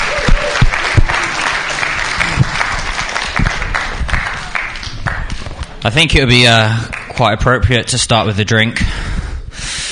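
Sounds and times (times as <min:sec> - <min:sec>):
audience applause: 0:00.0 - 0:05.8
speech: 0:05.8 - 0:09.2.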